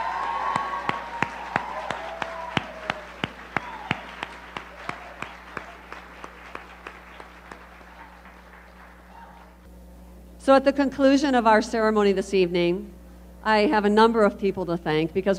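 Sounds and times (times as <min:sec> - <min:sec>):
loud audience applause: 0:00.0 - 0:09.6
speech: 0:10.4 - 0:15.3.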